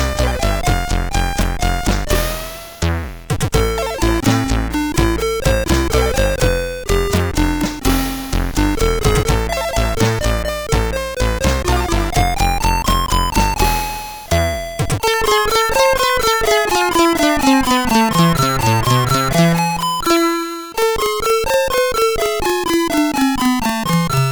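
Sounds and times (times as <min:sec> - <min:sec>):
bassline on CSG8580R5 SID chip: 0:00.0 - 0:24.2.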